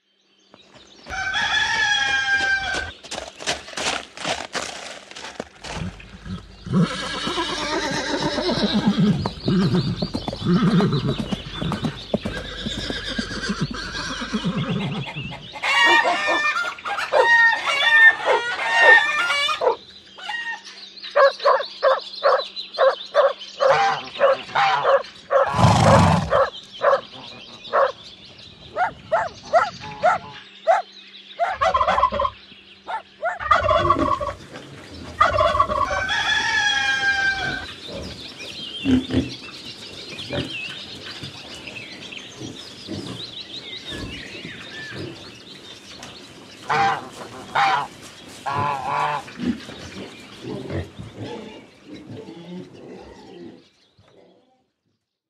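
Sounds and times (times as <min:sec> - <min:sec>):
farm animals in the countryside: 0:00.0 - 0:55.1.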